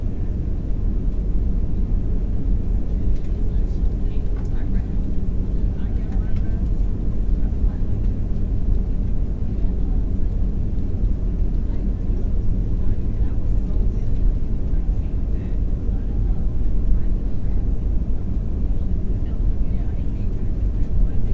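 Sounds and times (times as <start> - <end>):
airplane interior: 0.0 - 21.3.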